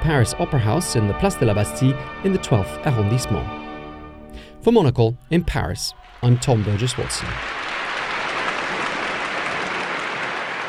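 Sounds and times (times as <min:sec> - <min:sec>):
speech: 0:00.0 - 0:03.6, 0:04.6 - 0:07.6
theatre audience applause after ballet at the Paris Opera: 0:06.0 - 0:10.6.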